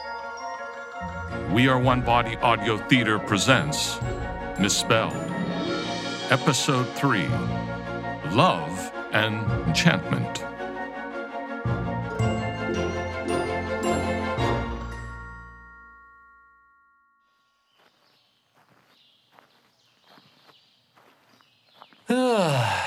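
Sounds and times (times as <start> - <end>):
chiming musical passage: 0.0 - 9.2, 11.7 - 18.2
speech: 1.0 - 5.4, 6.3 - 10.5
footsteps on a walk through a forest: 17.8 - 22.1.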